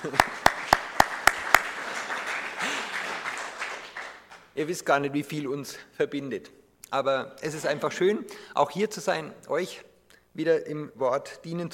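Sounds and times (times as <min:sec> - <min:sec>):
speech: 0:00.0 - 0:00.4, 0:04.6 - 0:11.7
crowd applause: 0:00.0 - 0:04.5
loud sharp claps: 0:00.0 - 0:04.6.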